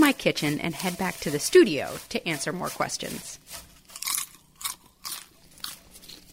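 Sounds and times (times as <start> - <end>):
speech: 0.1 - 3.7
crunching and chewing popcorn: 3.9 - 6.3.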